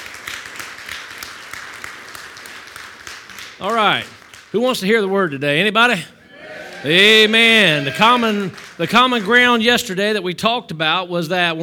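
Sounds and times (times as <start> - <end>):
audience applauding: 0.0 - 4.5, 6.4 - 9.8
speech: 3.6 - 6.2, 6.8 - 11.6.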